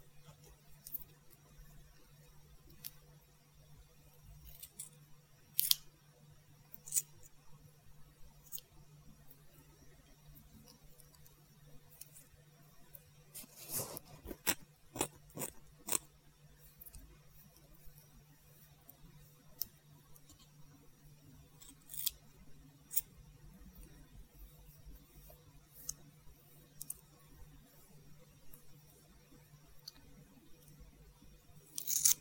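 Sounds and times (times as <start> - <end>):
steady low hum: 0.0 - 32.1
scissors snipping during a haircut: 31.7 - 32.1.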